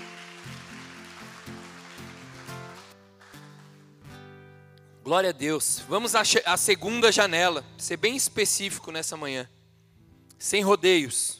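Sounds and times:
audience applauding: 0.0s - 3.9s
speech: 5.1s - 9.6s, 10.4s - 11.3s.

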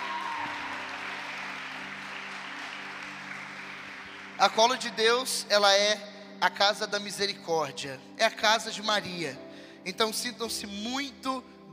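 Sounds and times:
audience applause: 0.0s - 5.0s
speech: 4.4s - 11.7s.

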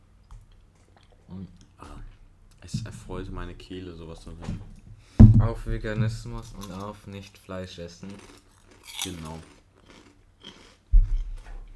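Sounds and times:
speech: 1.3s - 1.6s, 2.7s - 4.8s, 5.4s - 8.4s, 9.0s - 9.6s
crunchy bacon-flavoured snacks being eaten: 8.0s - 11.3s.

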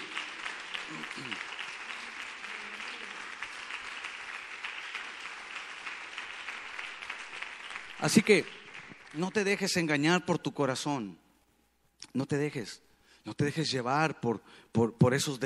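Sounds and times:
audience applauding: 0.0s - 9.6s
speech: 0.9s - 1.6s, 8.0s - 8.6s, 9.2s - 11.2s, 12.0s - 15.4s.

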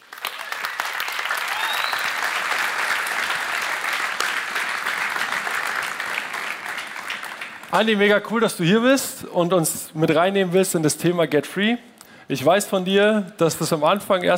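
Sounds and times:
audience applause: 0.0s - 8.2s
speech: 7.7s - 14.3s.

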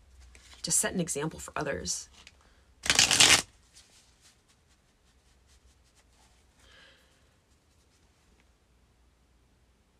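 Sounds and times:
speech: 0.7s - 2.3s
tarot cards being shuffled: 2.2s - 3.5s.

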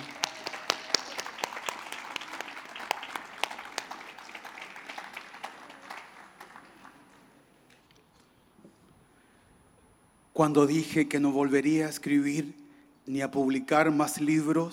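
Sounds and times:
audience applause: 0.0s - 7.3s
speech: 10.4s - 14.7s.

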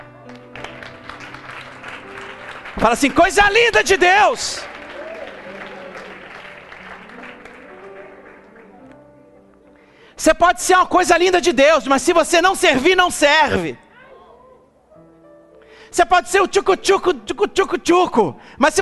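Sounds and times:
audience applauding: 0.2s - 9.2s
speech: 2.8s - 4.7s, 10.2s - 13.8s, 15.9s - 18.8s.

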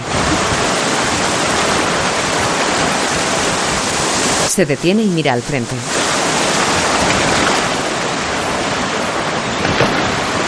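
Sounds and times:
strong river current rushing over rocks: 0.0s - 10.4s
speech: 4.6s - 6.0s.

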